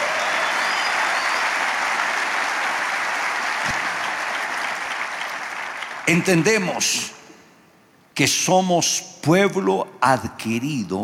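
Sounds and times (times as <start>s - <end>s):
audience applauding: 0.0s - 6.6s
speech: 6.1s - 7.2s, 8.2s - 11.0s.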